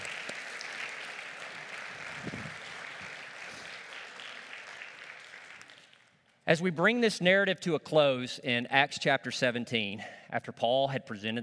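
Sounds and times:
audience applause: 0.0s - 6.1s
speech: 6.5s - 11.4s.

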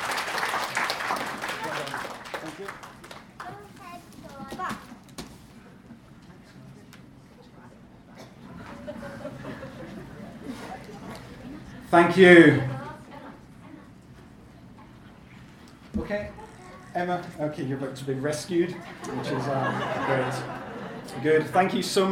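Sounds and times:
audience applause: 0.0s - 3.8s
laughter: 8.4s - 11.9s, 18.6s - 21.7s
speech: 11.9s - 12.7s, 17.0s - 20.6s, 21.2s - 22.0s.

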